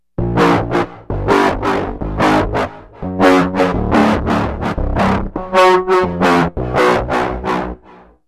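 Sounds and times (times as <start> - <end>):
filthy oi bass: 0.0 - 8.1.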